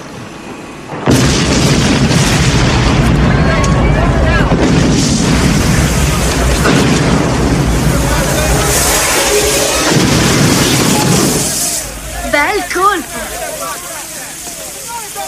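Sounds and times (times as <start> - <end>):
loud explosion: 0.9 - 12.4
sustained roar of further blasts and rumbling: 1.0 - 12.3.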